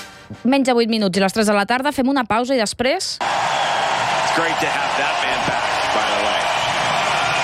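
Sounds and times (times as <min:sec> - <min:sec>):
speech: 0:00.5 - 0:03.7, 0:04.4 - 0:06.4
large tennis crowd applause: 0:03.2 - 0:07.4.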